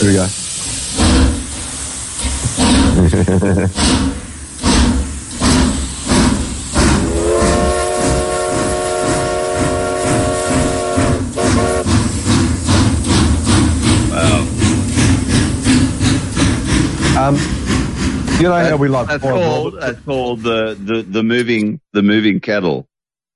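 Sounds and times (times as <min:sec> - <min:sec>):
speech: 0:00.0 - 0:00.4, 0:02.5 - 0:04.2, 0:17.3 - 0:17.6, 0:18.4 - 0:22.9
steam train chuffing: 0:00.0 - 0:21.0
laughter: 0:02.9 - 0:03.9, 0:18.4 - 0:20.6
steam train whistle: 0:06.9 - 0:11.9.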